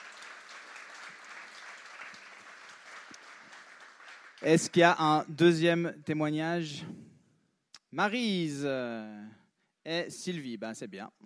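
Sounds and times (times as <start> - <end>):
audience applause: 0.0 - 4.5
speech: 4.4 - 7.0, 7.9 - 11.2.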